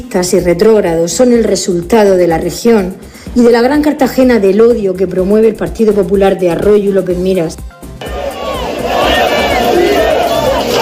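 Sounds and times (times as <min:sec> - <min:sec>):
speech: 0:00.0 - 0:07.8
large protest crowd shouting and chanting at a demonstration: 0:08.0 - 0:10.8.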